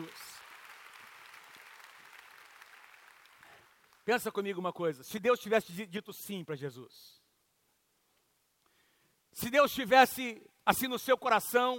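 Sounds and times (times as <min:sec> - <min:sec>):
audience applause: 0:00.0 - 0:04.0
speech: 0:04.1 - 0:07.2, 0:09.4 - 0:11.7.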